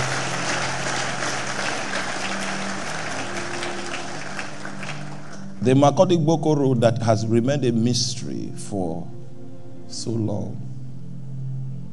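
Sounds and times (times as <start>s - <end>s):
audience applause: 0.0s - 5.6s
speech: 5.6s - 9.2s, 9.9s - 10.6s.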